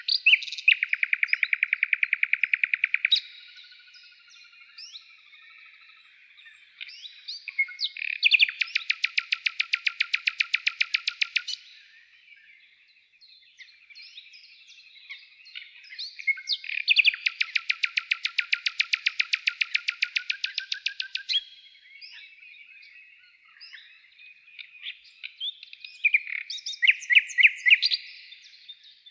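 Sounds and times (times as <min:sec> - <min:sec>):
bird chirping: 0:00.0 - 0:29.0.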